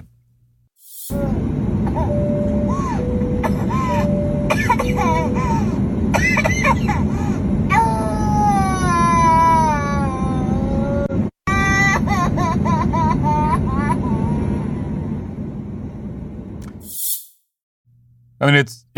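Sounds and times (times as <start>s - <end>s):
steady hum: 0.0s - 17.0s
young boy crying and whimpering: 1.2s - 7.1s, 7.7s - 12.5s.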